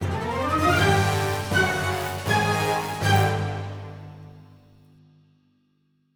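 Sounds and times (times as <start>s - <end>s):
epic fight theme music ending: 0.0s - 4.4s.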